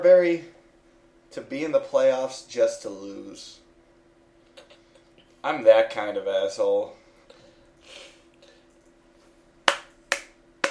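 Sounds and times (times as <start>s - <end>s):
speech: 0.0s - 0.5s, 1.3s - 3.6s, 5.4s - 7.0s
low steady hum: 0.0s - 10.6s
slow hand claps: 9.6s - 10.6s.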